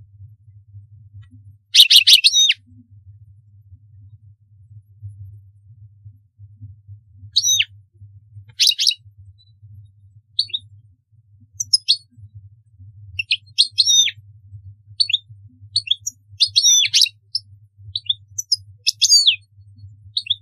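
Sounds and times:
low background hum: 0:00.0 - 0:20.4
European goldfinch twittering: 0:01.8 - 0:02.6, 0:07.3 - 0:07.7, 0:08.5 - 0:09.0, 0:10.4 - 0:10.6, 0:11.6 - 0:12.1, 0:13.2 - 0:14.2, 0:15.0 - 0:15.2, 0:15.8 - 0:17.4, 0:18.0 - 0:19.4, 0:20.2 - 0:20.4.

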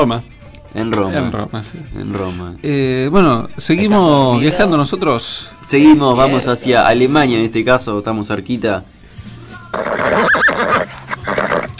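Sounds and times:
speech: 0:00.0 - 0:08.9
horse whinnying: 0:09.7 - 0:11.7.

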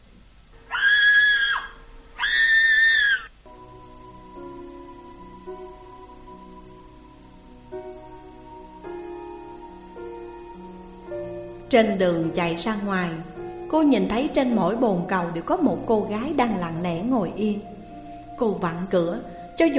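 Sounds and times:
woman's terrified scream: 0:00.7 - 0:03.3
speech: 0:11.7 - 0:17.7, 0:18.4 - 0:19.7.

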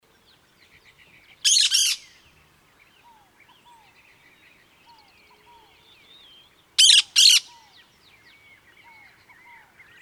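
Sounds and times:
cactus parakeet giving harsh scratchy screech calls: 0:01.5 - 0:02.0, 0:06.8 - 0:07.5.

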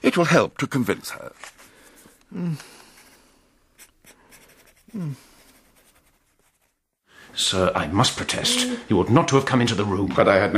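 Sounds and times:
speech: 0:00.0 - 0:01.6, 0:02.3 - 0:02.8, 0:04.9 - 0:05.3, 0:07.4 - 0:10.5
pen scratching on paper writing a letter: 0:03.8 - 0:06.8.

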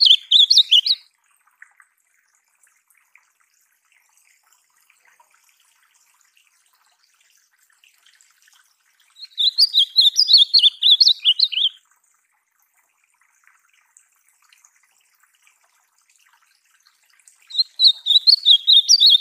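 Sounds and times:
ultramarine grosbeak warbled phrase: 0:00.0 - 0:01.0, 0:09.2 - 0:11.8, 0:17.5 - 0:19.2.

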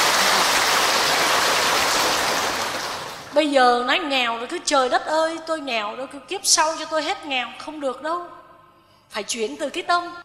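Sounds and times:
audience applause: 0:00.0 - 0:03.3
speech: 0:03.4 - 0:08.4, 0:09.1 - 0:10.2.

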